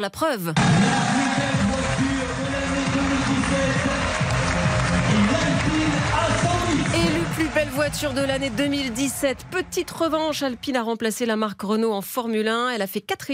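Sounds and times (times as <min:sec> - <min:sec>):
speech: 0:00.0 - 0:02.2, 0:03.0 - 0:13.3
crowd clapping: 0:00.6 - 0:10.7.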